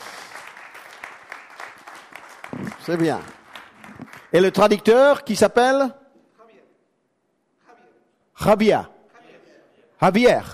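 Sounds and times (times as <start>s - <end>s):
audience applause: 0.0s - 4.7s
speech: 2.6s - 3.4s, 4.3s - 6.0s, 8.4s - 8.9s, 10.0s - 10.5s.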